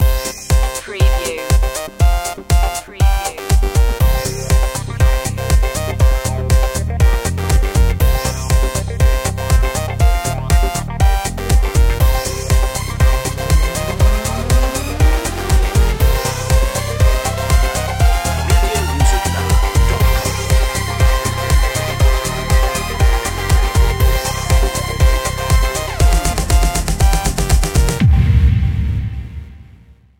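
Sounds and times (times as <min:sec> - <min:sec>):
dance floor music: 0:00.0 - 0:28.1.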